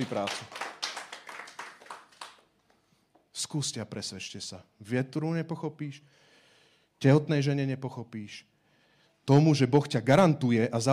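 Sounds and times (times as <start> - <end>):
speech: 0.0 - 0.6, 3.5 - 6.2, 7.0 - 8.5, 9.3 - 10.9
crowd applause: 0.0 - 2.4.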